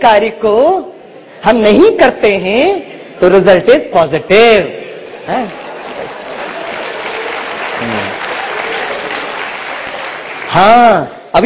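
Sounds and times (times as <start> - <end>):
speech: 0.0 - 5.6, 7.8 - 8.2, 10.5 - 11.4
audience clapping after a spoken line: 5.0 - 11.1.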